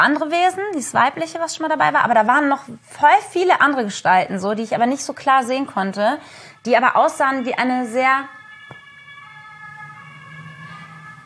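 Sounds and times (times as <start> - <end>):
speech: 0.0 - 8.4
emergency vehicle siren passing: 6.3 - 11.2.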